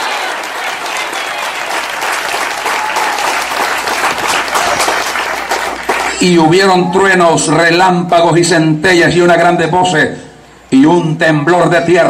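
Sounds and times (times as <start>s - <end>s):
audience applause: 0.0s - 6.5s
speech: 6.2s - 12.0s.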